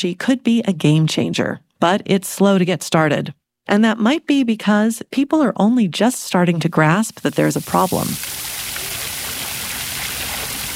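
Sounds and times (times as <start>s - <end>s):
speech: 0.0s - 8.6s
big public fountain on a square on Munich's east side: 7.1s - 10.7s.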